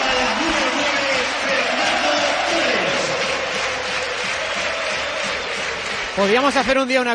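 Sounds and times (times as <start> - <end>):
packed stadium crowd cheering in sustained ovation: 0.0 - 7.1
speech: 6.2 - 7.1.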